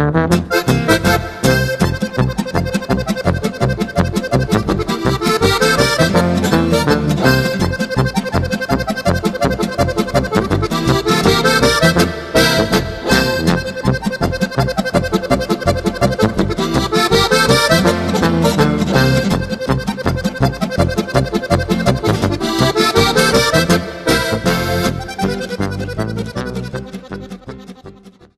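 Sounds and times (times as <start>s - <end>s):
harmonica: 0.2s - 28.3s.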